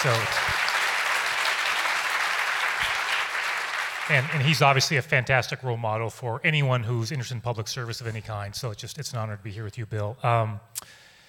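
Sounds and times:
speech: 0.0 - 0.5, 4.1 - 11.0
audience applause for William Ruckelhaus at a public speaking event: 0.0 - 5.0.

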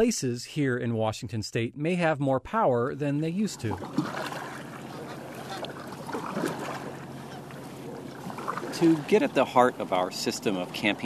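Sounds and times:
speech: 0.0 - 4.3, 8.8 - 11.0
kayak paddle splashing on lake water: 3.5 - 11.0.

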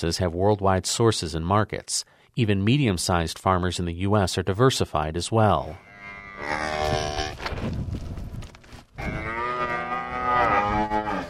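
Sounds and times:
speech: 0.0 - 8.1
cattle mooing: 5.8 - 7.4, 9.0 - 11.2.

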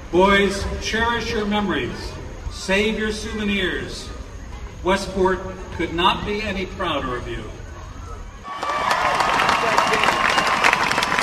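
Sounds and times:
speech: 0.1 - 4.2, 4.8 - 7.6
crowd cheering and applauding at a parade: 8.4 - 11.2.

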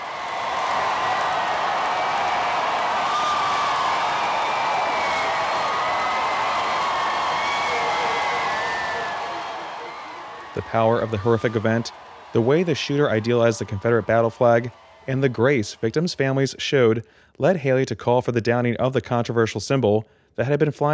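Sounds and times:
crowd whistling: 0.0 - 14.8
crowd of 10,000 people cheering outside statehouse as Confederate flag lowered: 0.0 - 16.6
speech: 10.6 - 20.9.

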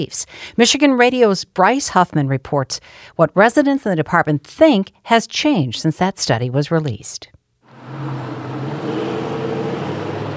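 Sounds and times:
speech: 0.0 - 8.1
traffic at a city street intersection: 7.7 - 10.3.

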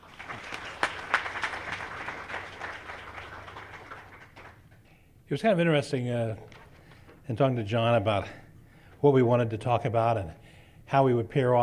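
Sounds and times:
audience applause: 0.0 - 4.6
speech: 5.3 - 6.5, 7.3 - 8.4, 9.0 - 11.6.

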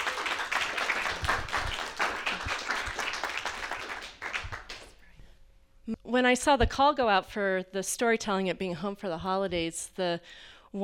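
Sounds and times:
audience applause: 0.0 - 4.9
speech: 6.1 - 10.8.

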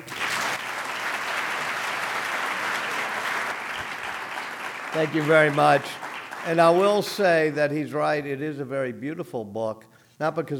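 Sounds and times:
audience applause welcoming author Walter Isaacson at a bookstore event: 0.0 - 7.7
speech: 4.9 - 10.5.

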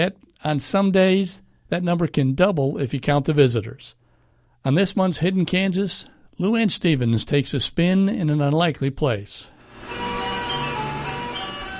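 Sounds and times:
speech: 0.0 - 4.0, 4.6 - 10.2
tinkling carousel music in Kansas: 9.7 - 11.7.

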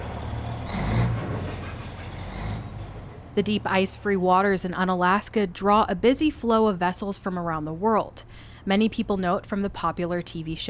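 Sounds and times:
tractors and heavy machinery at Dutch Harbor fishing port docks: 0.0 - 3.8
speech: 3.4 - 10.6.

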